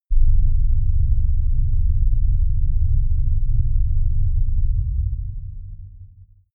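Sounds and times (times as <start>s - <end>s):
rumble: 0.0s - 6.5s.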